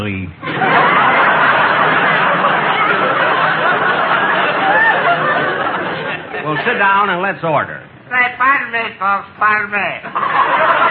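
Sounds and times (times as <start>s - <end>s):
speech: 0.0s - 0.8s, 6.6s - 10.8s
people snickering and chuckling in a nightclub crowd: 0.4s - 7.1s, 10.0s - 10.8s
crowd chatter in a nightclub: 0.6s - 7.1s.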